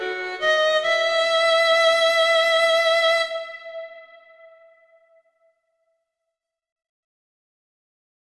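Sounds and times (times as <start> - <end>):
minuet: 0.0 - 5.2.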